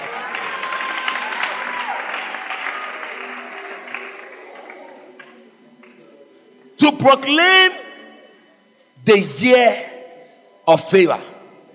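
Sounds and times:
audience clapping: 0.0 - 6.0
speech: 7.0 - 7.8, 9.1 - 9.9, 10.7 - 11.3.

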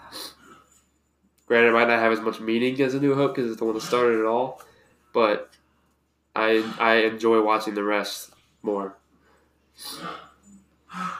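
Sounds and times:
speech: 1.5 - 5.6, 6.4 - 9.0, 9.8 - 10.2
dog coughing fit: 3.7 - 4.2, 6.6 - 7.0, 9.9 - 11.1.

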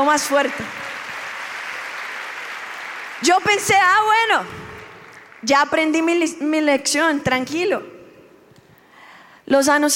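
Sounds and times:
speech: 0.0 - 0.9, 3.2 - 4.7, 5.4 - 7.9, 9.5 - 9.9
audience applause: 0.4 - 3.7.

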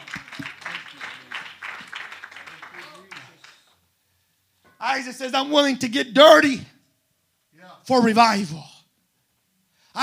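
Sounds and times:
crowd clapping hands: 0.0 - 3.8
speech: 4.8 - 6.7, 7.9 - 8.7.

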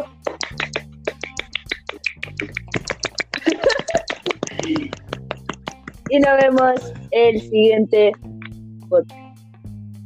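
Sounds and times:
people clapping: 0.2 - 7.1
laughter: 2.3 - 7.4
speech: 6.1 - 8.2, 8.9 - 9.2.

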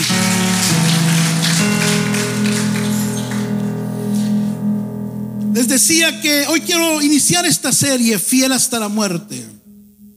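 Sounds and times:
audience applauding: 0.0 - 3.7
sustained low musical chords: 0.0 - 10.1
speech: 5.7 - 9.6.

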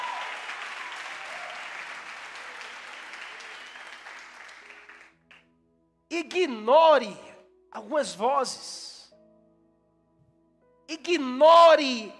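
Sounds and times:
audience applauding: 0.0 - 5.4
speech: 6.2 - 8.9, 11.1 - 12.1.

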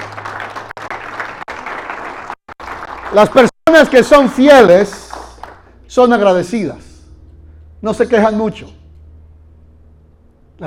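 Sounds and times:
audience clapping hands: 0.0 - 5.8
speech: 3.1 - 5.0, 5.9 - 6.9, 7.8 - 8.8.

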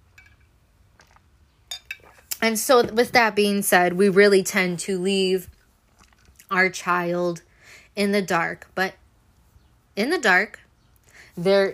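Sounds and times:
glass clinking while getting water: 0.1 - 0.5, 1.7 - 2.2
speech: 2.4 - 5.6, 6.5 - 9.0, 10.0 - 10.6, 11.4 - 11.7.

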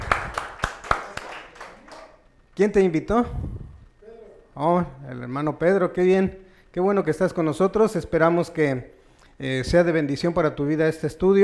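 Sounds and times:
welcoming applause from audience: 0.0 - 2.1
speech: 2.6 - 3.5, 4.6 - 11.4.

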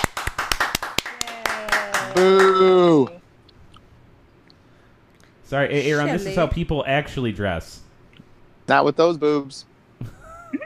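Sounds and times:
brisk round of hand clapping: 0.0 - 3.1
speech: 2.2 - 3.2, 5.5 - 7.8, 8.7 - 10.6.

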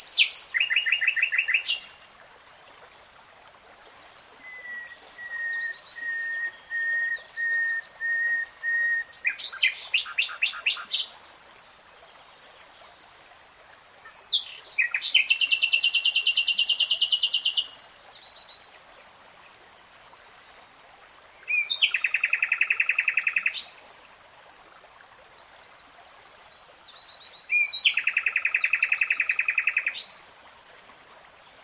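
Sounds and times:
nightingale song: 0.0 - 2.0, 3.7 - 11.2, 13.6 - 18.6, 20.5 - 23.8, 25.3 - 30.3.

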